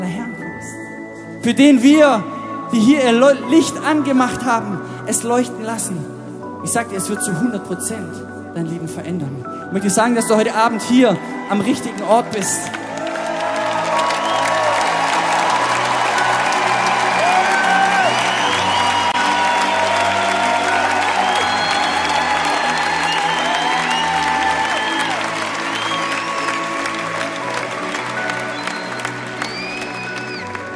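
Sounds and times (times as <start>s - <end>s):
speech: 1.4s - 12.8s
crowd applause: 12.4s - 30.7s.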